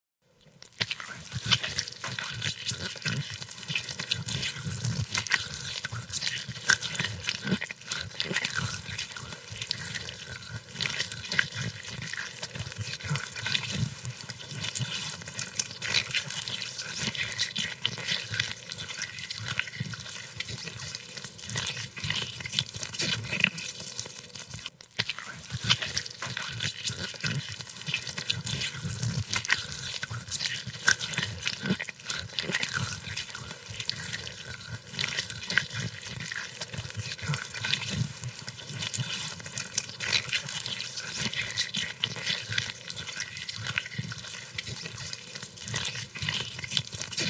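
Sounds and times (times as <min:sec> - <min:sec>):
silkworms: 0:00.5 - 0:47.2.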